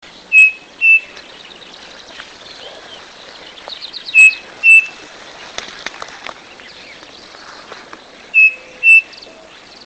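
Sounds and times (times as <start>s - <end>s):
crespín bird singing: 0.0s - 9.8s.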